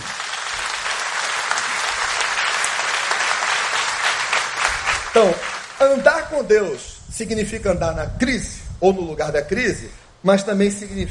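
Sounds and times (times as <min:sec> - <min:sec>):
audience applause: 0:00.0 - 0:06.2
speech: 0:05.2 - 0:11.0.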